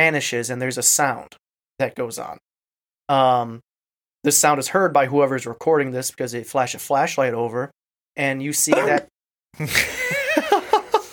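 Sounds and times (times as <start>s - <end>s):
speech: 0.0s - 2.5s, 3.1s - 10.0s
person sneezing: 8.7s - 9.9s
laughter: 9.6s - 11.1s.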